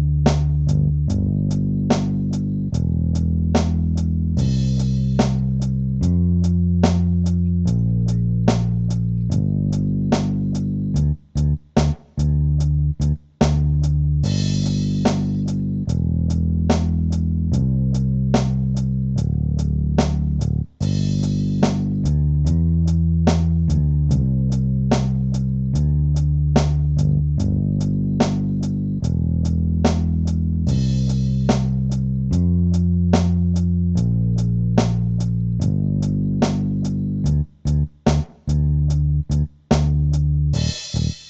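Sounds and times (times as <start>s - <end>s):
bass: 0.0s - 41.2s
drums: 0.0s - 41.2s.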